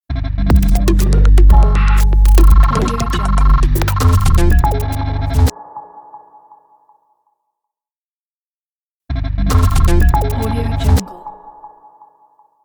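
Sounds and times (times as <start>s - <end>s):
glitch digital logo sound: 0.5s - 5.5s, 9.5s - 11.0s.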